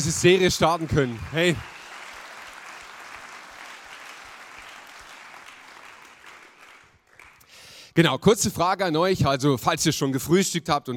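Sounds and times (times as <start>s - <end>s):
speech: 0.0s - 1.8s, 8.0s - 10.9s
live audience applause: 0.0s - 7.5s.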